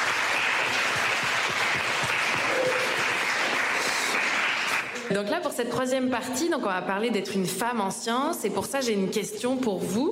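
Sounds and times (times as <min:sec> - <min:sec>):
audience applause: 0:00.0 - 0:05.1
speech: 0:05.1 - 0:10.0.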